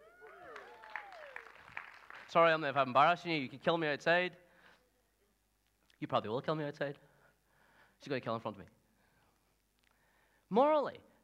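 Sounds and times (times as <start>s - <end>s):
audience cheering and clapping: 0.0s - 2.4s
speech: 2.3s - 4.4s, 6.0s - 7.1s, 8.0s - 8.8s, 10.5s - 11.1s.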